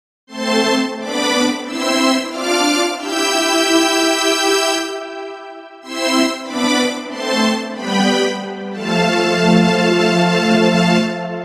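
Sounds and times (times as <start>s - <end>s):
strange orchestral music: 0.4s - 11.4s.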